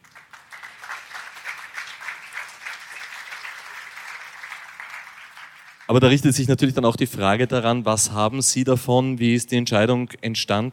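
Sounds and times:
audience applause: 0.0s - 6.2s
speech: 5.9s - 10.7s.

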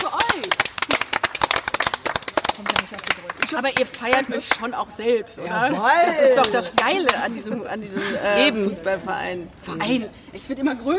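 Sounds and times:
voices cheering: 0.0s - 0.6s
crowd applause: 0.0s - 4.2s
speech: 3.5s - 10.9s.

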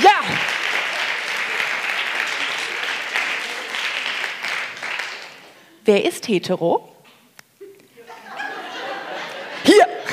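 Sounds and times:
audience clapping: 0.0s - 5.7s
speech: 5.9s - 6.9s
laughter: 8.0s - 10.1s.

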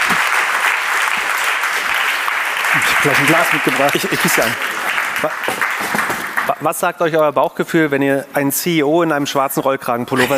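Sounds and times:
audience applause at an event: 0.0s - 6.6s
speech: 3.0s - 6.0s, 6.6s - 10.3s.

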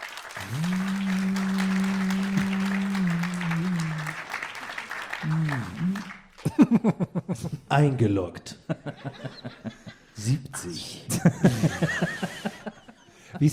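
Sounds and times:
applause: 0.0s - 6.8s
laughter: 0.0s - 7.7s, 8.6s - 10.2s, 11.1s - 13.5s
speech: 0.5s - 0.8s, 6.7s - 12.2s.

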